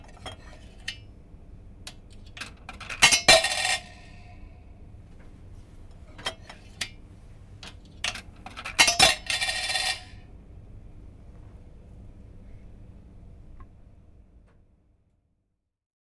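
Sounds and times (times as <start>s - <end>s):
coins in a laundromat vending machine: 2.1s - 4.5s, 7.7s - 10.3s.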